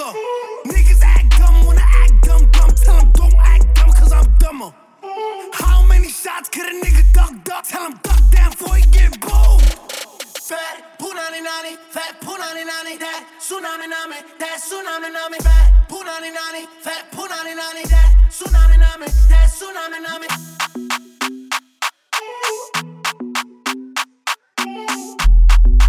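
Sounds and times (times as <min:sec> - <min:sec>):
bass: 0:00.7 - 0:04.5, 0:05.6 - 0:06.1, 0:06.9 - 0:07.3, 0:08.1 - 0:09.8, 0:15.4 - 0:15.9, 0:17.9 - 0:19.6, 0:25.2 - 0:25.8.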